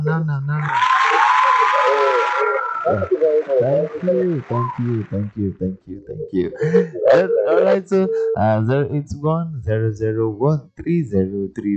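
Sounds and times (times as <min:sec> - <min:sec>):
speech: 0:00.0 - 0:01.0, 0:01.9 - 0:11.7
laughter: 0:00.0 - 0:11.7
hands clapping: 0:00.6 - 0:09.0.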